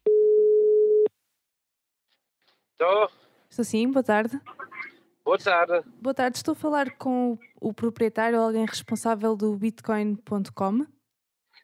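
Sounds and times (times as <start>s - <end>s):
telephone line tone when calling a number: 0.0s - 1.1s
speech: 2.8s - 4.6s, 5.3s - 11.0s.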